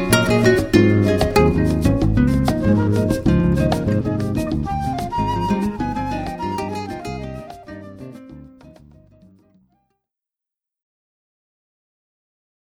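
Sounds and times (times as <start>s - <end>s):
Latin gypsy group playing: 0.0s - 9.2s.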